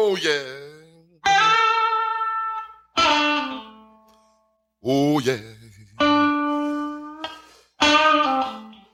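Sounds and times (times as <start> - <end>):
speech: 0.2 - 0.5
distorted electric guitar playing a lick: 1.3 - 4.1, 5.9 - 8.9.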